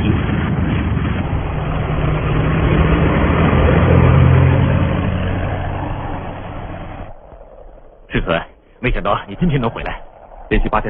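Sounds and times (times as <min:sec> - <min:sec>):
airplane engine roar while landing: 0:00.0 - 0:10.8
low droning hum: 0:00.0 - 0:10.8
speech: 0:08.8 - 0:10.8.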